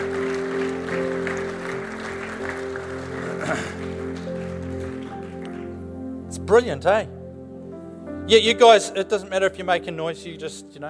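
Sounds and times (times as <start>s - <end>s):
audience applause: 0.0s - 5.9s
low musical drone: 0.0s - 10.8s
speech: 6.5s - 7.2s, 8.3s - 10.8s.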